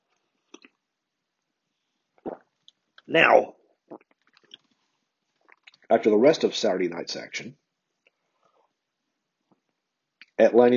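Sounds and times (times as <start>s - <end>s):
mouth clicks: 2.2s - 4.7s
speech: 3.1s - 4.0s, 5.9s - 7.6s, 10.4s - 10.7s.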